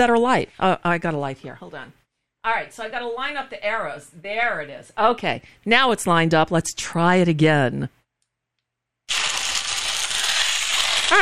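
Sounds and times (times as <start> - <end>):
speech: 0.0 - 8.0
blender crushing ice: 9.1 - 11.2.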